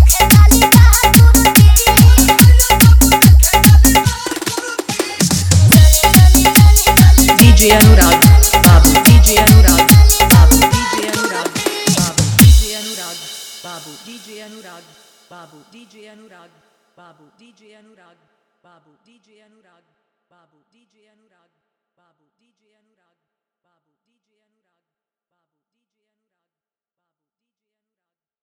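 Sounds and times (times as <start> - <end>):
dholak with bass mix: 0.0 - 14.3.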